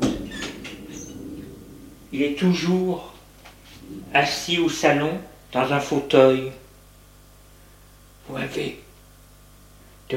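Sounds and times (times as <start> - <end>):
door closing: 0.0 - 2.9
speech: 2.1 - 3.1, 4.0 - 6.6, 8.3 - 8.8.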